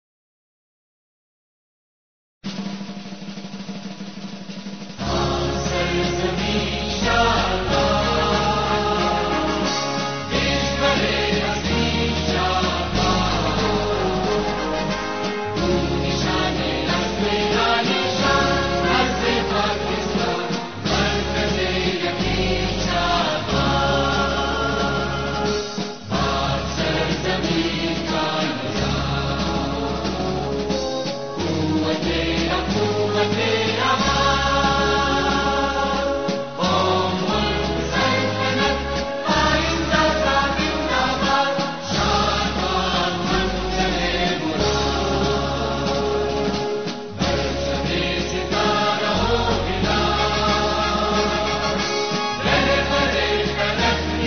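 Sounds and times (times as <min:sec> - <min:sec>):
national anthem music: 0:03.9 - 0:54.2.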